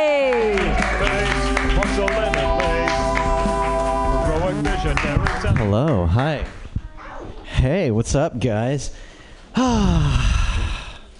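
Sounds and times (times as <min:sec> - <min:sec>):
crowd clapping for a comedian: 0:00.0 - 0:06.6
loud tonal walk-on music with a sliding pitch: 0:00.6 - 0:06.0
speech: 0:05.6 - 0:06.6, 0:07.6 - 0:10.4.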